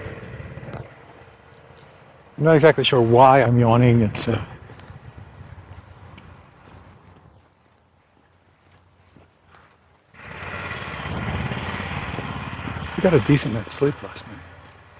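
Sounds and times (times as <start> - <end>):
heavy construction machinery replacing a driveway: 0.0 - 5.7, 10.1 - 14.9
speech: 2.4 - 4.5, 13.0 - 14.5.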